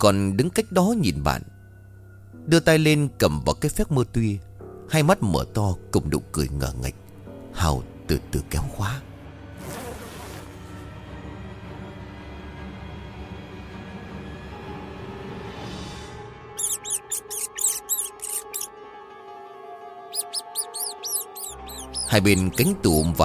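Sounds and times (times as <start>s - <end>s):
speech: 0.0s - 1.6s, 2.4s - 7.0s, 7.6s - 9.8s, 22.1s - 23.2s
rats scrabbling inside a wardrobe: 16.6s - 18.7s, 20.2s - 23.2s.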